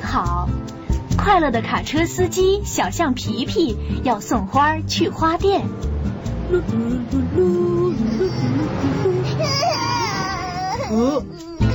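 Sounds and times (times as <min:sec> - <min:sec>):
speech: 0:00.1 - 0:09.9, 0:10.9 - 0:11.5
low rumble: 0:04.5 - 0:10.4
child crying and whimpering: 0:06.8 - 0:11.7.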